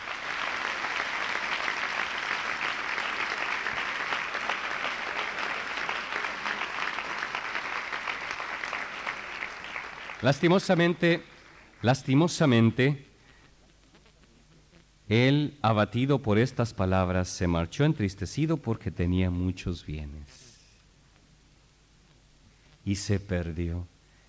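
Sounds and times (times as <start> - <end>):
audience applause: 0.0 - 11.8
speech: 10.2 - 13.1, 15.1 - 20.4, 22.9 - 23.9.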